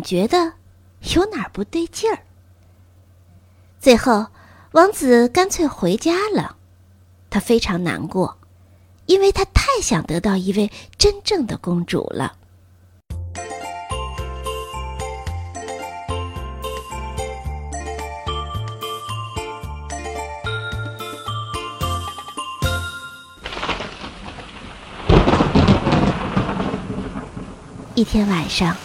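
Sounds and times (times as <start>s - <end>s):
speech: 0.0s - 2.3s, 3.8s - 6.6s, 7.3s - 8.4s, 9.1s - 12.4s, 28.0s - 28.8s
tinkling bell-like melody: 13.4s - 23.4s
heavy rain: 23.4s - 28.8s
rumbling thunder: 23.4s - 28.8s.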